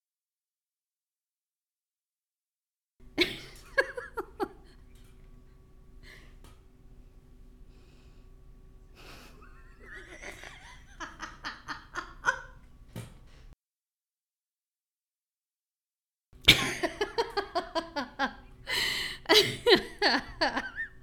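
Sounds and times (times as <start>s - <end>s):
person laughing: 3.2s - 4.8s, 9.0s - 12.6s, 16.4s - 21.0s.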